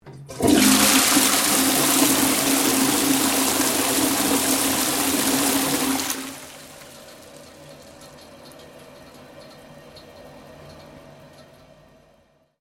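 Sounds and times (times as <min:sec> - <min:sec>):
toilet flushing in Australia: 0:00.1 - 0:09.5.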